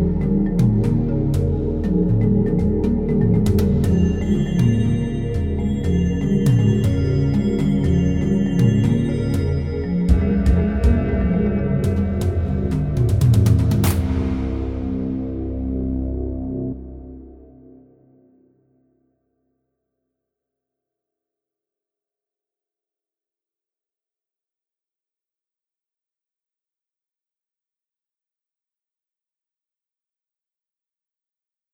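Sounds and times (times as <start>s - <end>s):
TV music: 0.0s - 17.8s.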